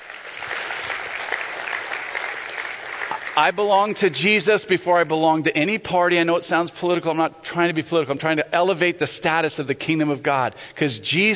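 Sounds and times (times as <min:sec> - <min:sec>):
audience clapping: 0:00.0 - 0:04.0
speech: 0:03.4 - 0:11.3.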